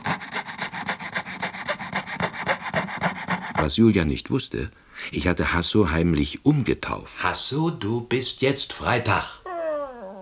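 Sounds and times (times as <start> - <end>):
fretsaw sawing wood: 0.0 - 3.8
speech: 3.6 - 9.4.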